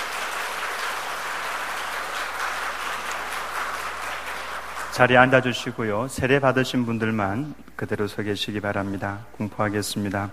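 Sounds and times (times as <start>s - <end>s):
audience applause after infant baptism: 0.0s - 5.4s
speech: 5.0s - 10.3s.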